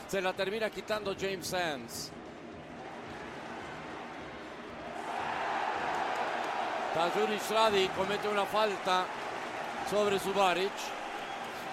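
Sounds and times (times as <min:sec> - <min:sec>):
speech: 0:00.1 - 0:02.3, 0:06.9 - 0:09.2, 0:09.9 - 0:11.0
football stadium crowd at a Portland versus New York City match demanding a yellow card: 0:02.6 - 0:11.7.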